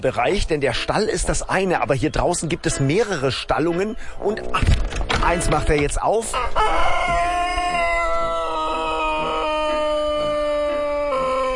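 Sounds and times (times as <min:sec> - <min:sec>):
speech: 0:00.0 - 0:07.3
roosters crowing: 0:06.2 - 0:11.5.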